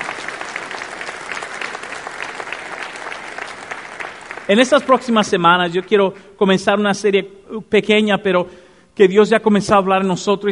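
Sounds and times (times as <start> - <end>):
audience applauding: 0.0 - 6.0
speech: 4.5 - 10.4.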